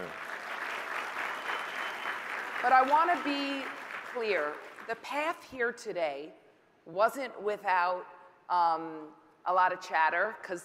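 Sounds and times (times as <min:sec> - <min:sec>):
audience applause: 0:00.0 - 0:04.9
speech: 0:02.6 - 0:10.6.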